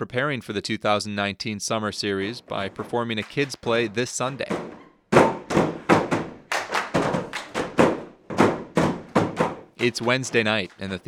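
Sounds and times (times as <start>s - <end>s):
speech: 0.0s - 4.7s, 9.8s - 11.0s
actors playing on plastic 5-gallon buckets: 2.6s - 11.0s.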